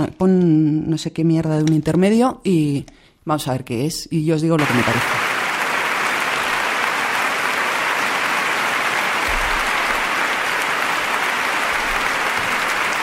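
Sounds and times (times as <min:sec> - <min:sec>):
speech: 0:00.0 - 0:05.2
audience applause: 0:04.6 - 0:13.0.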